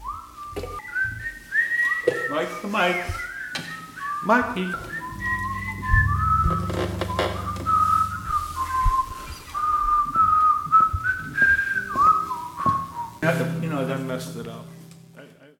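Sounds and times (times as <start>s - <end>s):
whistle: 0.0s - 13.3s.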